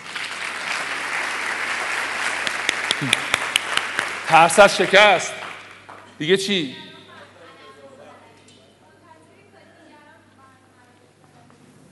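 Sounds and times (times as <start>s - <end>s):
sharp individual claps: 0.0s - 6.1s
audience applause: 0.0s - 6.2s
speech: 3.0s - 3.2s, 4.3s - 5.4s, 6.2s - 6.8s.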